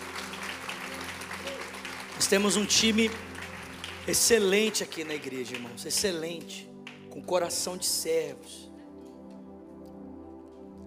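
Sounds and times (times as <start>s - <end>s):
audience applause: 0.0s - 6.1s
speech: 2.2s - 3.3s, 4.0s - 8.7s.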